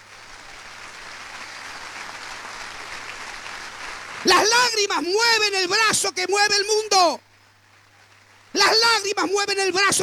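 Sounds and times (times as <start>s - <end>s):
applause: 0.0s - 6.1s
speech: 4.2s - 7.3s, 8.6s - 10.0s.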